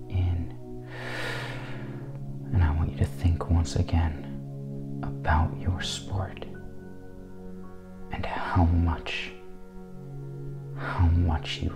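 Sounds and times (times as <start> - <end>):
long deep breath: 0.8 - 2.2
speech: 3.0 - 4.3, 5.2 - 6.5, 8.2 - 9.4, 10.8 - 11.7.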